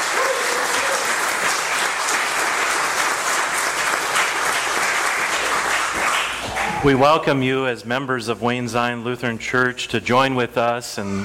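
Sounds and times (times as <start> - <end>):
audience applause: 0.0 - 7.2
speech: 6.8 - 11.2.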